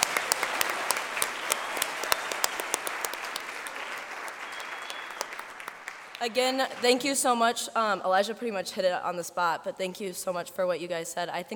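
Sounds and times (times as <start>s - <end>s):
audience applause: 0.0s - 6.9s
speech: 6.2s - 11.5s.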